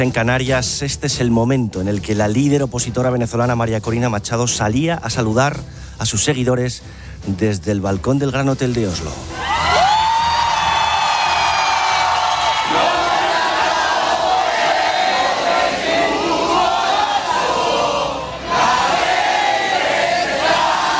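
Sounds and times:
speech: 0:00.0 - 0:09.6
large crowd cheering and shouting: 0:09.3 - 0:20.9.

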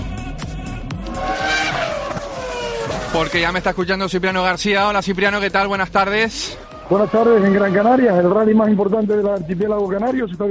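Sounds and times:
racing car engines roaring in a motor sports jingle: 0:00.8 - 0:10.0
whining tones sweeping up and down in pitch: 0:00.9 - 0:03.9, 0:06.0 - 0:09.0
tires squealing and skidding: 0:01.0 - 0:03.9, 0:05.8 - 0:08.9
speech: 0:03.1 - 0:10.5.

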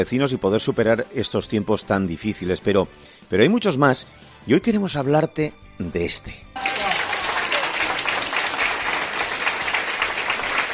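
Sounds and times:
speech: 0:00.0 - 0:06.7
applause from neighbours on balconies: 0:06.6 - 0:10.7.

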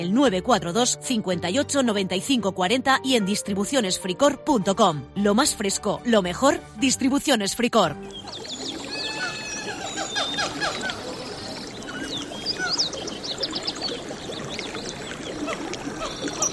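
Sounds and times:
speech: 0:00.0 - 0:08.6
flowing streams: 0:08.0 - 0:16.5
small birds chirping: 0:08.0 - 0:16.5.

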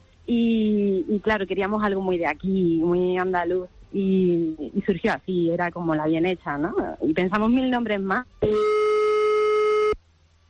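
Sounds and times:
faint low hum: 0:00.0 - 0:10.4
speech: 0:01.1 - 0:08.8
continuous telephone tone on a failed call: 0:08.4 - 0:10.0.

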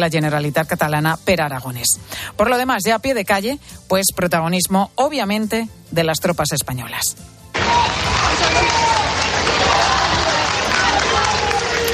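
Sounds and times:
speech: 0:00.0 - 0:08.8
large crowd cheering and applauding at military parade: 0:07.6 - 0:11.9.

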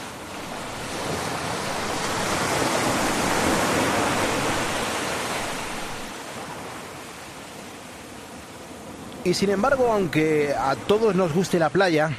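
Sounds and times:
sea waves breaking on shore: 0:00.0 - 0:12.1
speech: 0:09.2 - 0:12.1.

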